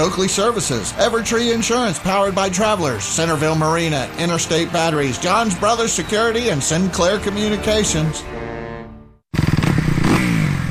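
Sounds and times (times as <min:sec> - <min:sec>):
speech: 0:00.0 - 0:08.5
motorcycle engine revving: 0:04.9 - 0:10.6.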